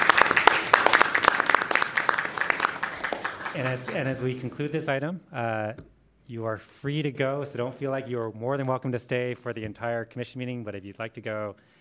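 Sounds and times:
group applauding: 0.0s - 4.8s
speech: 3.6s - 11.7s.

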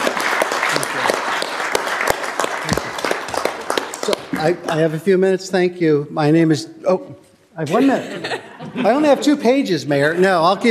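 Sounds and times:
applause: 0.0s - 5.0s
speech: 4.4s - 10.6s
laughter: 7.6s - 10.6s.

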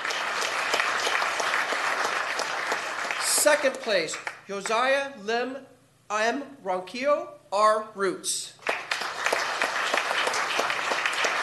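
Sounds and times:
audience applause: 0.0s - 4.4s, 8.6s - 11.4s
speech: 3.5s - 8.6s.

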